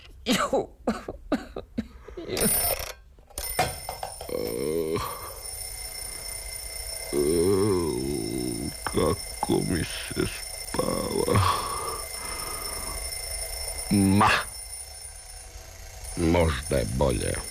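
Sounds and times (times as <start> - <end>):
speech: 0.2 - 1.1, 9.6 - 10.4, 16.4 - 17.4
person coughing and clearing throat: 0.3 - 2.4
alarm clock ringing: 2.4 - 17.4
low vocal sounds: 7.1 - 9.2, 10.7 - 12.0.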